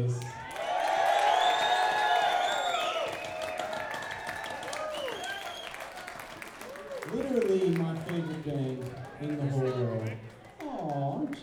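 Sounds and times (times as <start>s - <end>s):
speech: 0.0s - 0.4s, 7.1s - 10.2s
audience clapping for a band at a concert in Eugene Oregon: 0.0s - 11.4s
audience whooping and whistling for a band at a concert in Eugene Oregon: 0.4s - 7.2s.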